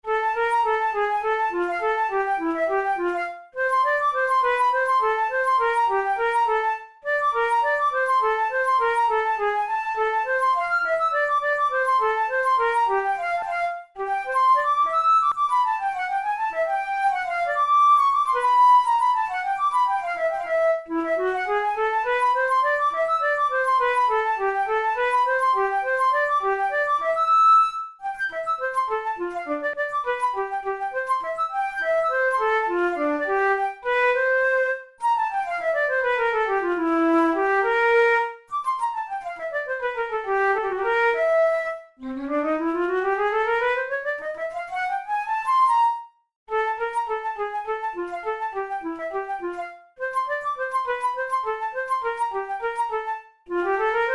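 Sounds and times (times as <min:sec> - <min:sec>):
studies for the Boehm flute: 0:00.0 - 0:54.1.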